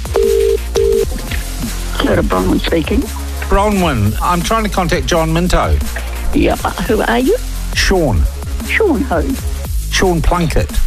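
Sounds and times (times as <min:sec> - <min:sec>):
outgoing telephone call ringing tone: 0:00.0 - 0:01.1
speech: 0:02.2 - 0:10.8.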